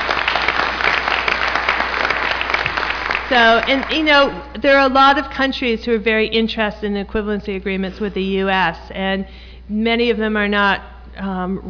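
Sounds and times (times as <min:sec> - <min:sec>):
audience applause: 0:00.0 - 0:04.0
speech: 0:03.3 - 0:11.6.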